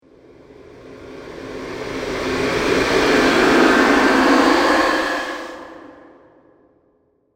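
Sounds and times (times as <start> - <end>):
scary breathing: 1.2 - 6.8.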